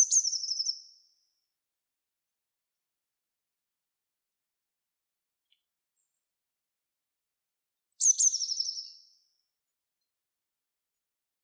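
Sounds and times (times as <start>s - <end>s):
bird giving high thin chirps and descending trill: 0.0s - 0.9s, 7.8s - 9.0s.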